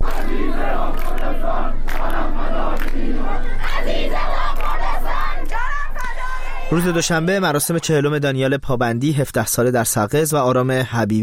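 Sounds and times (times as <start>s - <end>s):
citizens chanting slogans at night from homes: 0.0s - 7.2s
speech: 6.7s - 11.2s.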